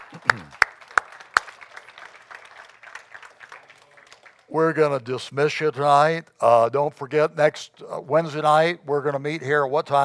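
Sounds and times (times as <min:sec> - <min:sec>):
audience applauding: 0:00.0 - 0:04.8
speech: 0:04.5 - 0:10.0.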